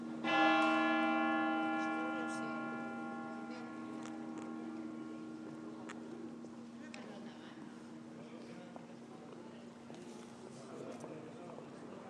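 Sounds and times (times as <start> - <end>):
bells of Girona Cathedral: 0.0 - 6.5.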